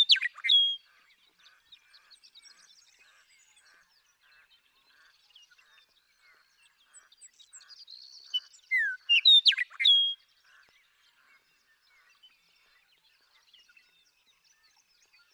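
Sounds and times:
Western Meadowlark singing: 0.0 - 0.8, 8.3 - 10.2.

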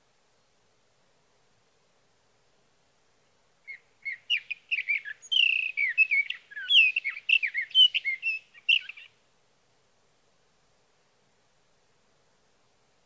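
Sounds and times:
Sage thrasher song: 3.7 - 9.2.

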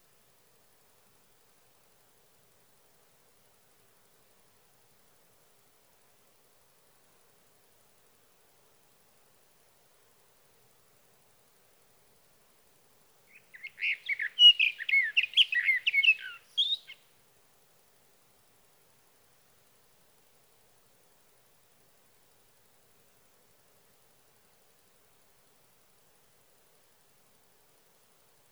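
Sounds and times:
sage thrasher delivering a fast rambling warble: 13.5 - 17.0.

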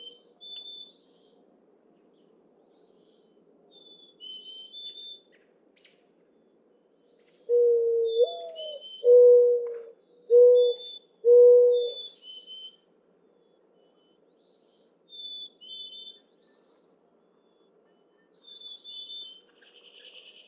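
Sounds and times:
mourning dove singing: 7.5 - 12.2.

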